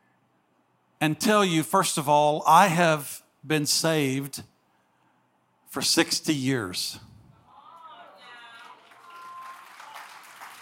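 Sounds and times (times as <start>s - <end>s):
speech: 1.0s - 4.5s, 5.7s - 7.1s
audience applause: 8.3s - 10.5s.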